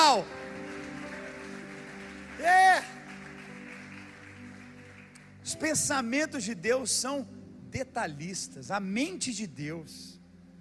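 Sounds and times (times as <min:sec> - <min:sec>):
audience applause: 0:00.0 - 0:05.4
speech: 0:00.2 - 0:00.4, 0:05.5 - 0:10.2.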